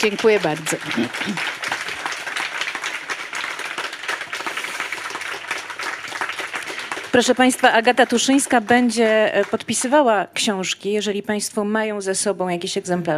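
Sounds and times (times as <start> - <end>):
speech: 0.0 - 1.6, 7.1 - 13.1
crowd applauding: 0.0 - 10.1.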